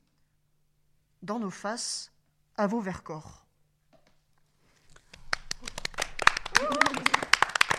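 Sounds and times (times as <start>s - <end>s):
speech: 1.2s - 3.4s
hands clapping: 4.9s - 7.7s.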